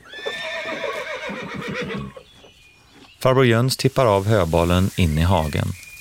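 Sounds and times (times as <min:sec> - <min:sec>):
two horses whinnying in a paddock: 0:00.0 - 0:02.4
speech: 0:03.2 - 0:05.9.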